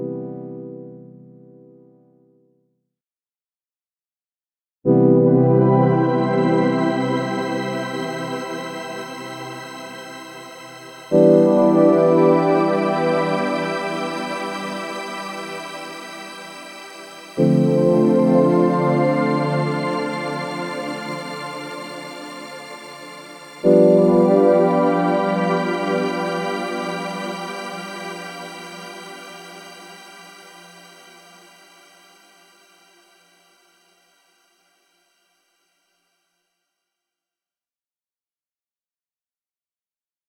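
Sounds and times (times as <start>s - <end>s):
polyphonic synthesizer: 4.9s - 30.3s.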